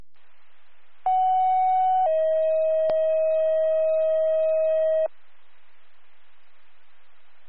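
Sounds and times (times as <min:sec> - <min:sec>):
fire department dispatch alert tone: 0:01.1 - 0:05.1.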